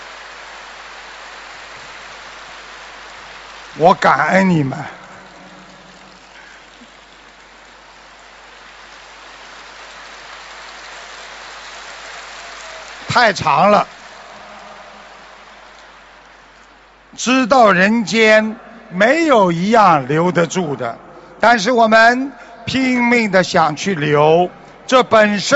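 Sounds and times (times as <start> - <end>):
audience applause: 0.0 - 17.1
speech: 3.8 - 5.0, 13.2 - 14.0, 17.2 - 25.5.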